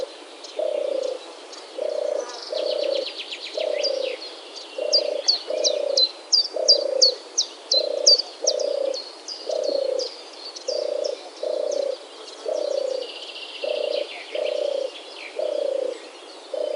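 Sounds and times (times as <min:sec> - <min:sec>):
European Turtle Dove purring: 0:00.0 - 0:04.2, 0:04.8 - 0:16.7.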